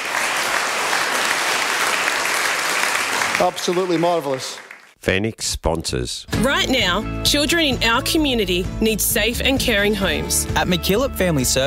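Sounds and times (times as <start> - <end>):
audience applause: 0.0 - 5.0
speech: 3.4 - 11.6.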